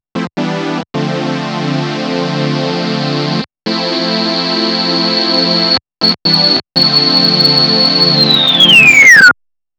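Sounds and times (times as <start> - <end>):
Waldorf Blofeld synthesizer with manual low-pass filter: 0.2 - 9.3.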